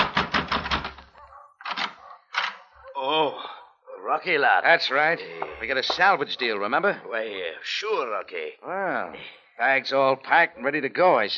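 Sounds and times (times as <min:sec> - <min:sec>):
pounding on a door: 0:00.0 - 0:01.1
speech: 0:03.0 - 0:11.3.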